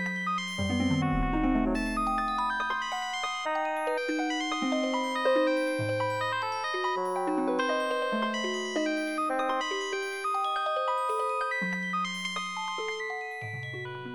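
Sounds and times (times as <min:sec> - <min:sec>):
celesta: 0:00.0 - 0:14.1
glockenspiel: 0:00.0 - 0:14.1
harp: 0:00.0 - 0:14.1
bassoon solo: 0:00.6 - 0:02.9.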